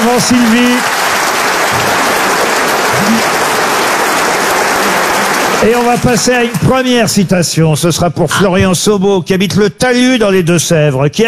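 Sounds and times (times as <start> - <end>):
audience applause: 0.0 - 7.1
speech: 0.2 - 1.0, 5.6 - 11.2.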